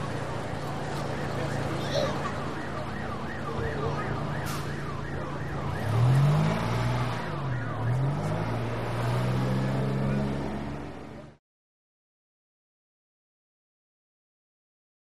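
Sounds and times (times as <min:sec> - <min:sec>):
medium busy intersection traffic in a big city: 0:00.0 - 0:11.4.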